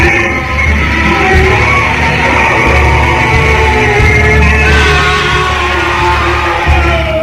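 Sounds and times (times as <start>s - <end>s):
man screaming in fright: 0.1s - 7.2s.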